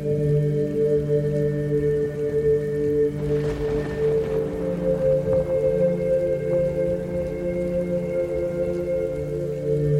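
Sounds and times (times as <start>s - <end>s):
steady rain: 0.0s - 9.9s.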